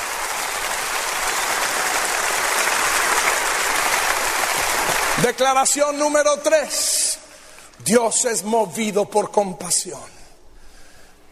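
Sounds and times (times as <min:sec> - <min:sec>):
audience applause: 0:00.0 - 0:05.6
speech: 0:05.3 - 0:07.2, 0:07.8 - 0:10.2.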